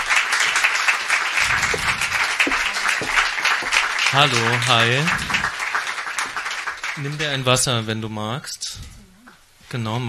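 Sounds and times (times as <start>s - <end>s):
audience applause: 0.0s - 7.5s
speech: 4.1s - 5.3s, 7.0s - 8.8s, 9.7s - 10.0s.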